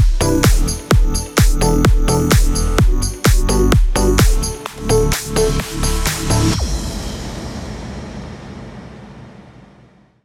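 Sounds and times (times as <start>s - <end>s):
house music in E minor: 0.0s - 6.6s.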